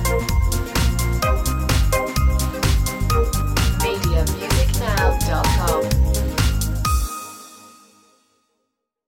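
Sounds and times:
beat: 0.0 - 7.1.

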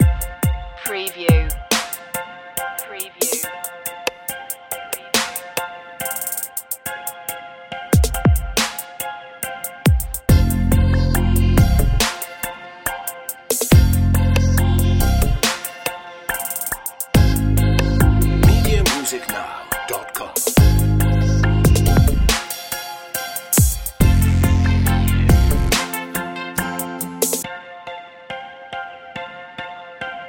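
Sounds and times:
trap beat: 0.0 - 2.2, 2.8 - 6.8, 9.9 - 12.5, 13.5 - 22.8, 23.4 - 27.4.

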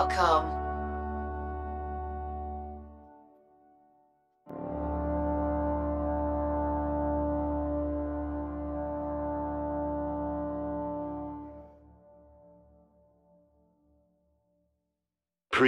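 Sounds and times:
brass solo: 0.0 - 3.7, 4.5 - 12.9.

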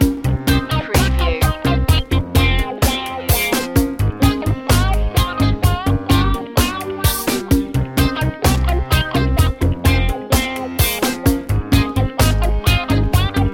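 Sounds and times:
reggae music loop: 0.0 - 13.5.

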